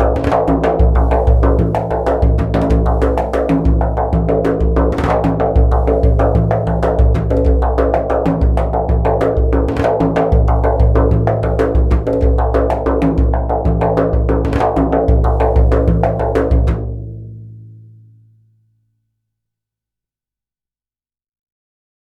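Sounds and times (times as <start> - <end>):
Sequential Prophet X synthesizer bendir sound: 0.0 - 17.0.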